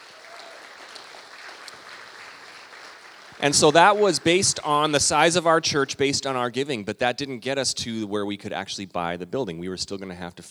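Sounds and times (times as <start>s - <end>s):
audience clapping loudly: 0.0s - 5.6s
speech: 3.4s - 10.5s.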